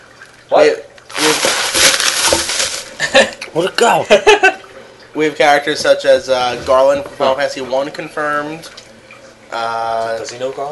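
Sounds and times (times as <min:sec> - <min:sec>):
speech: 0:00.5 - 0:01.5, 0:03.6 - 0:04.6, 0:05.2 - 0:08.8, 0:09.5 - 0:10.6
bag rustling: 0:01.1 - 0:03.0.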